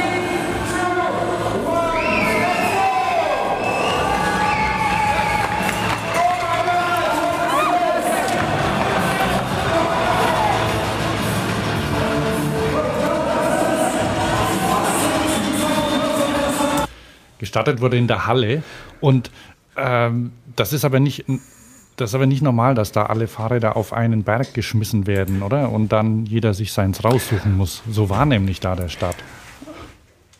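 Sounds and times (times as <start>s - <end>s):
crowd cheering and shouting at the start of a cyclocross race: 0.0s - 16.9s
speech: 17.6s - 29.4s.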